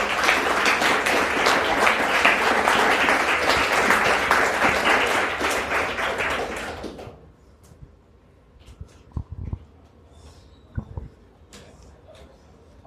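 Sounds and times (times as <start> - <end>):
crowd round of applause: 0.0 - 7.2.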